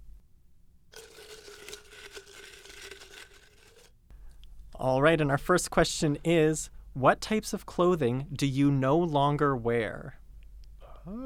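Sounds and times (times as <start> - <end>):
paper question slips rustling in a jar: 1.0 - 3.9
speech: 4.8 - 10.2, 11.1 - 11.2.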